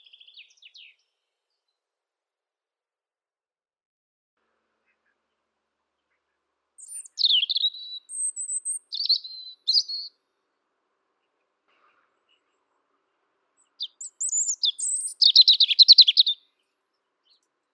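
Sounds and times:
Erithacus rubecula: 6.8 - 10.1, 13.8 - 16.4.

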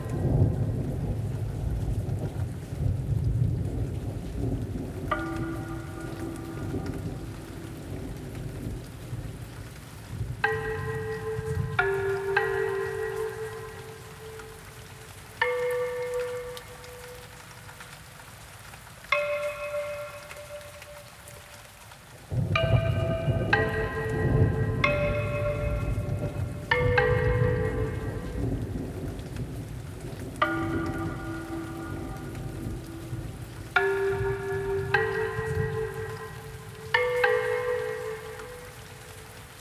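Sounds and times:
Asian bells ringing: 0.0 - 0.8, 5.1 - 8.7, 10.4 - 17.7, 19.1 - 21.7, 22.4 - 29.2, 30.4 - 39.6
thunderstorm: 0.0 - 17.5, 22.3 - 39.6.

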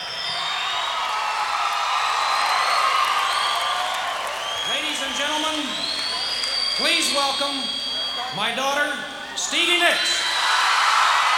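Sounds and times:
crowd clapping and cheering: 0.0 - 8.2, 10.1 - 11.3
high whoops and whistles: 0.0 - 8.4
speech: 6.8 - 10.2.

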